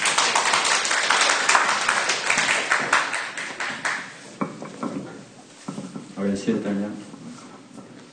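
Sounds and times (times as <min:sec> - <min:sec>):
audience applause: 0:00.0 - 0:04.3
speech: 0:06.2 - 0:07.1.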